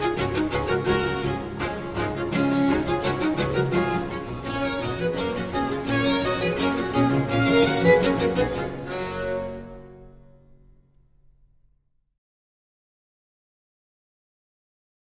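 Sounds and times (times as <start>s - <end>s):
string orchestra with basso continuo playing a concerto in G major: 0.0s - 10.8s.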